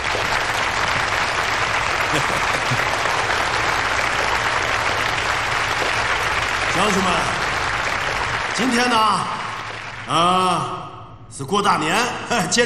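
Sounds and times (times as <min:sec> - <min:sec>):
audience applause: 0:00.0 - 0:10.7
laughter: 0:01.9 - 0:03.3
speech: 0:06.8 - 0:07.4, 0:08.6 - 0:09.4, 0:10.1 - 0:12.6.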